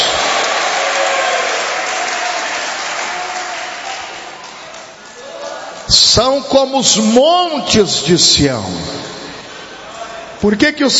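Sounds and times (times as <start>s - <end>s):
audience applauding: 0.0s - 5.9s
speech: 6.1s - 9.0s, 10.4s - 10.9s.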